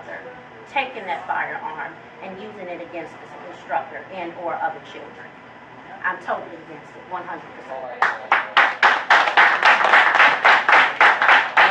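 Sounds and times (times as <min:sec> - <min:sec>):
speech: 0:00.7 - 0:05.4, 0:06.0 - 0:08.8
audience clapping: 0:08.0 - 0:11.6.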